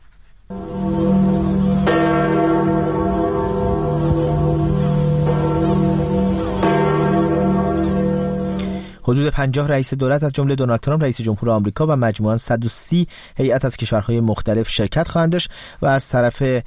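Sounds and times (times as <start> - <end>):
church bells ringing: 0.5 - 9.0
speech: 9.1 - 16.6.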